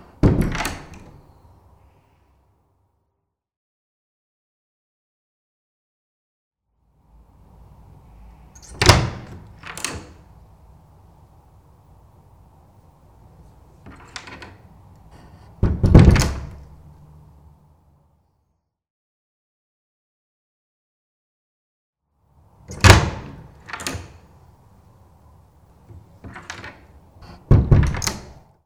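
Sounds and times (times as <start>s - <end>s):
wooden door: 0.0s - 1.3s, 8.5s - 10.4s, 13.4s - 16.9s, 22.6s - 24.4s, 25.8s - 28.5s.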